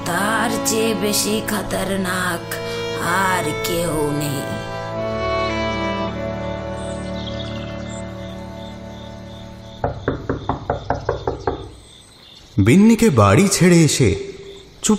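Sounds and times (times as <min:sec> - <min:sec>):
sustained music: 0:00.0 - 0:10.2
speech: 0:00.1 - 0:04.7, 0:12.6 - 0:14.9
loud knocking on a door: 0:09.8 - 0:11.8.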